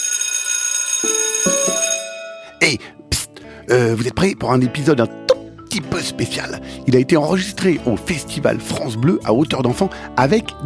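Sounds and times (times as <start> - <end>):
bell ringing: 0.0 - 2.6
speech: 3.7 - 10.6.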